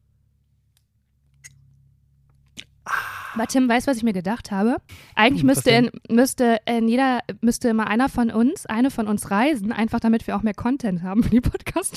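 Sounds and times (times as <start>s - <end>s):
sipping water and tea: 2.6s - 3.5s
speech: 3.4s - 11.9s.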